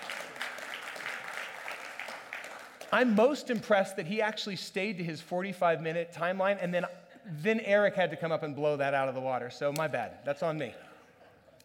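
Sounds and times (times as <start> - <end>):
audience applause: 0.0 - 3.2
speech: 2.9 - 10.9.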